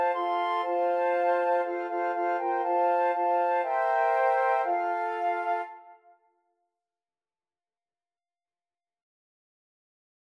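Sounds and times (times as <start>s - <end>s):
flute quartet: 0.0s - 6.1s.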